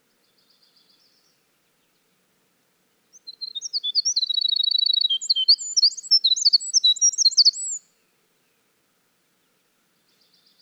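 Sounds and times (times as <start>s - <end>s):
winter wren song: 3.1s - 7.9s.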